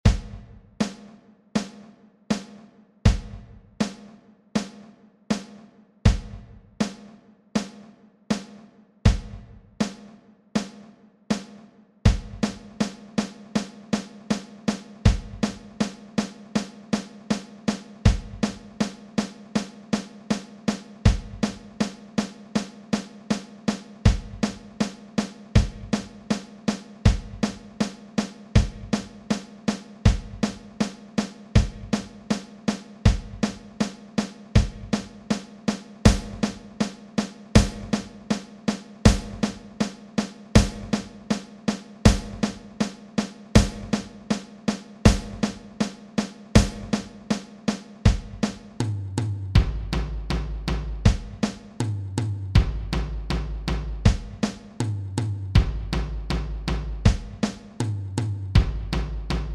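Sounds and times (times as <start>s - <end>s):
simple rock drum fills: 0.0s - 59.5s.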